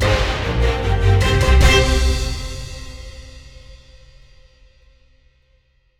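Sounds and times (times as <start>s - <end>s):
free spin outro music: 0.0s - 2.8s.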